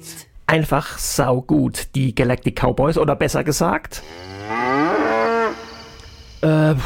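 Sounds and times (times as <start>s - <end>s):
speech: 0.5s - 5.0s, 6.4s - 6.8s
cattle mooing with long loud lowing call: 4.0s - 6.4s.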